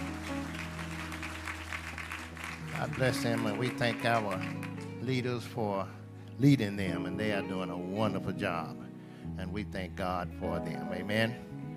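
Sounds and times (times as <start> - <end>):
audience applause: 0.0 - 4.9
speech: 2.8 - 11.6.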